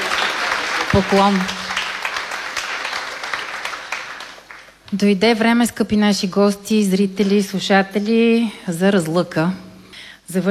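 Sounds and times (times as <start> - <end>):
audience applause: 0.0 - 4.8
speech: 1.0 - 1.6, 4.9 - 9.6, 10.3 - 10.4.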